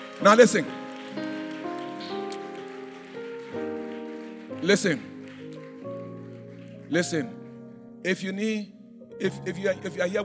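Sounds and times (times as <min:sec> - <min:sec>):
audience applauding: 0:00.0 - 0:07.7
speech: 0:00.2 - 0:01.3, 0:04.6 - 0:05.1, 0:06.9 - 0:07.4, 0:08.0 - 0:10.2.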